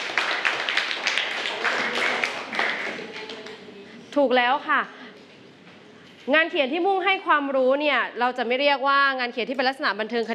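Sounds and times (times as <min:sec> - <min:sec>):
class of children clapping their hands: 0:00.0 - 0:03.6
speech: 0:04.2 - 0:05.0, 0:06.3 - 0:10.3.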